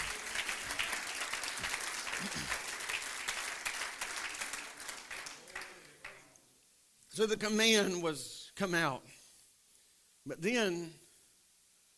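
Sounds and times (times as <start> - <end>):
audience clapping hands: 0.0 - 6.4
speech: 7.2 - 9.1, 10.3 - 11.0.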